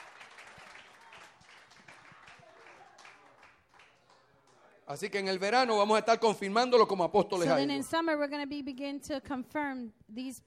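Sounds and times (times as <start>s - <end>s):
audience hand clapping: 0.0s - 4.7s
speech: 4.9s - 10.4s.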